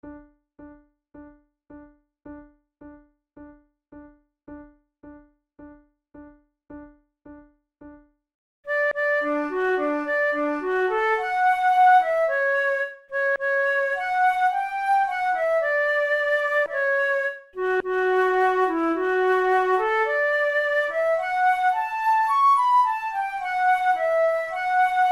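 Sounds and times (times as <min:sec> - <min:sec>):
flute duet: 0:08.7 - 0:25.0.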